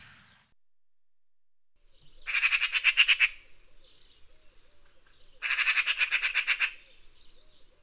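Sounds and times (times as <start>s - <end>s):
raven giving harsh caws: 2.3s - 3.6s, 5.4s - 6.9s.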